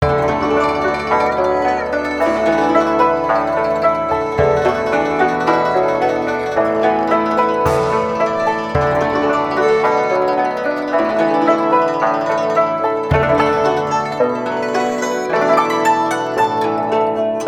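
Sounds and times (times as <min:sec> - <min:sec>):
Chinese New Year music: 0:00.0 - 0:17.4.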